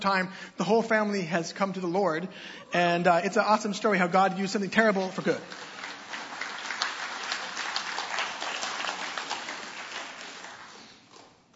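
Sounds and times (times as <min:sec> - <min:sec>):
speech: 0:00.0 - 0:05.7
audience applause: 0:05.2 - 0:11.3.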